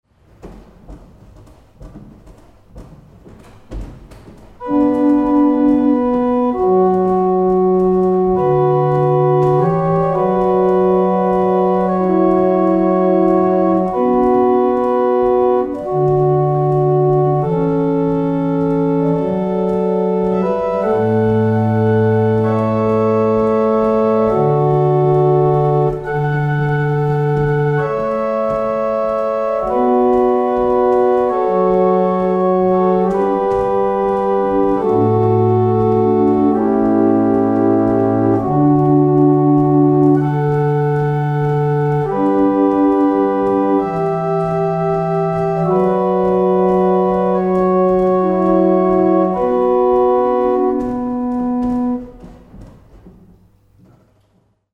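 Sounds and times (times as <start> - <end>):
barrel organ: 0.4 - 53.6.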